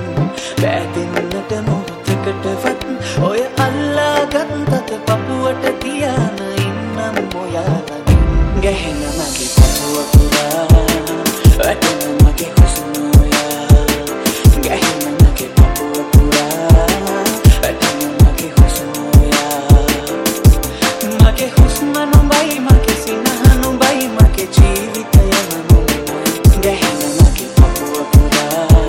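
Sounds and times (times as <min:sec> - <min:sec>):
hip hop remix: 0:00.0 - 0:28.8
thunder bass: 0:07.7 - 0:28.8.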